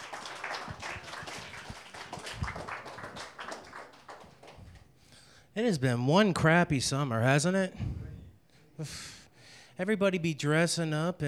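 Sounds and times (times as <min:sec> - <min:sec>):
audience applause: 0:00.0 - 0:04.8
speech: 0:05.6 - 0:07.9, 0:08.8 - 0:09.1, 0:09.8 - 0:11.2.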